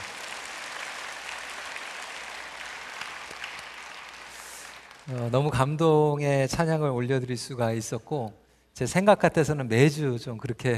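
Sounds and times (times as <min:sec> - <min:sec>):
large audience applause: 0:00.0 - 0:05.5
speech: 0:05.1 - 0:10.7.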